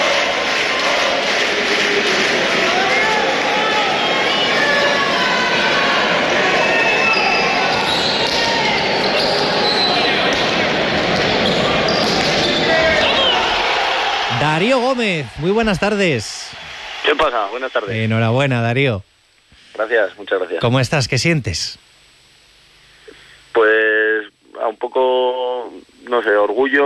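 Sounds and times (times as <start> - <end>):
crowd roar at the Adarraga frontón manomanista final: 0.0 - 18.0
speech: 14.9 - 19.1, 19.8 - 21.9, 24.6 - 26.8.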